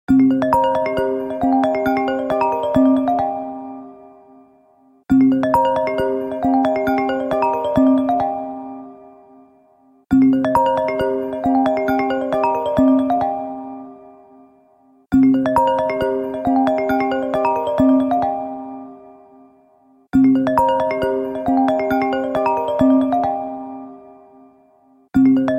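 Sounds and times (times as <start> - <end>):
ringtone: 0.1 - 25.5.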